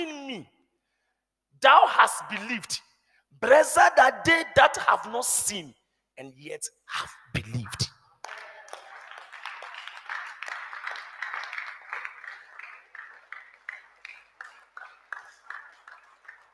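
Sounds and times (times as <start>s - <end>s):
speech: 0.3s - 0.6s, 1.6s - 7.9s
audience clapping: 8.2s - 16.5s.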